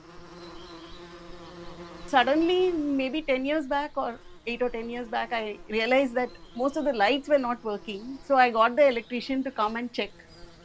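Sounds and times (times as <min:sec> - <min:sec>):
beehive buzzing inside a light switch: 0:00.0 - 0:10.6
speech: 0:02.1 - 0:10.2.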